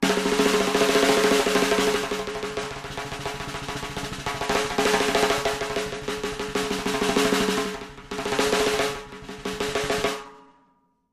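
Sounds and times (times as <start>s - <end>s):
fast snare drum roll: 0.0s - 10.4s.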